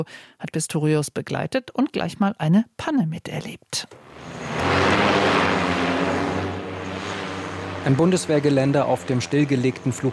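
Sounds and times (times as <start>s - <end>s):
speech: 0.0s - 4.4s, 7.8s - 10.1s
interceptor drone taking off: 4.0s - 10.1s.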